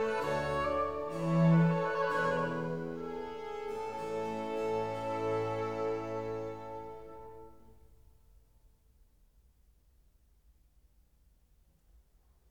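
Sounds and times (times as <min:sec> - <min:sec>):
oboe concerto slow movement: 0:00.0 - 0:07.8.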